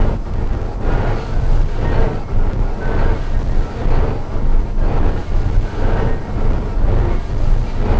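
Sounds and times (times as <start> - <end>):
ambient drone: 0.0 - 7.9.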